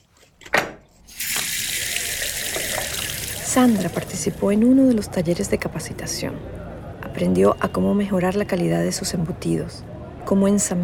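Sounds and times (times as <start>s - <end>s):
water running from a tap as a freshly scaled fish is rinsed: 1.1s - 4.5s
speech: 3.6s - 6.6s, 7.2s - 10.8s.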